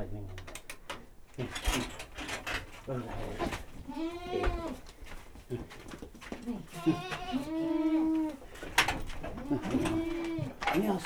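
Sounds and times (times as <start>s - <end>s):
rustling: 0.4s - 11.0s
speech: 1.4s - 1.9s, 2.9s - 4.1s, 6.8s - 7.2s
domestic goat bleating: 3.4s - 5.7s, 6.4s - 8.5s, 9.2s - 11.0s.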